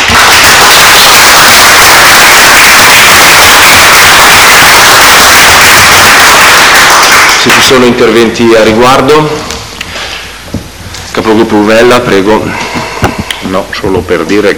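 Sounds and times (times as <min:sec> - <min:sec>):
crowd applause: 0:00.0 - 0:07.4
speech: 0:07.7 - 0:09.5, 0:11.2 - 0:12.7, 0:13.5 - 0:14.5.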